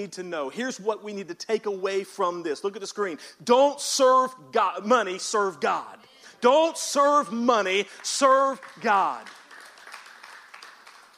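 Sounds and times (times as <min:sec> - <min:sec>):
speech: 0:00.0 - 0:09.4
half-hearted applause from the audience: 0:07.7 - 0:11.1.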